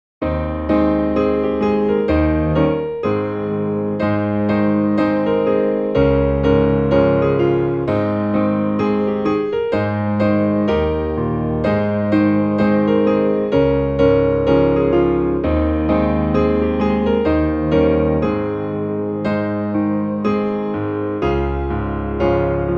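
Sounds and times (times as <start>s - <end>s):
traditional hymn played on piano: 0.2s - 22.7s.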